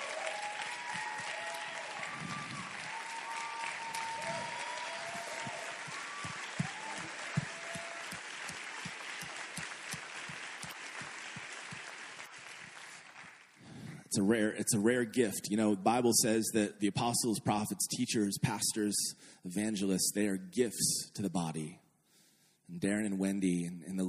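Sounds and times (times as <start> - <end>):
audience applause: 0.0 - 13.8
speech: 14.1 - 21.8, 22.8 - 24.0.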